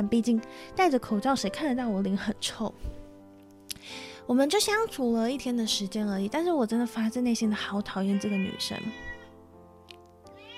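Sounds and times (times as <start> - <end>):
speech: 0.0 - 3.0, 3.8 - 9.1
cat meowing: 8.1 - 9.3, 10.4 - 10.5.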